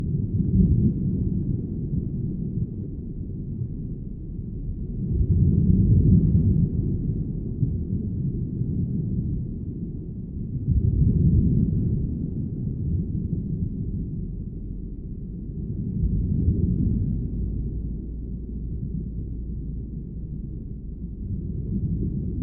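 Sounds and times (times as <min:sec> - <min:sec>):
underwater bubbles in the deep sea: 0:00.0 - 0:22.4.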